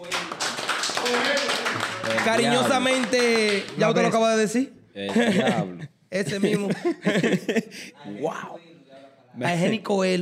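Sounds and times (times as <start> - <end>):
audience applause: 0.0 - 4.0
speech: 1.1 - 1.5, 2.1 - 8.7, 9.3 - 10.2
laughter: 5.1 - 8.0.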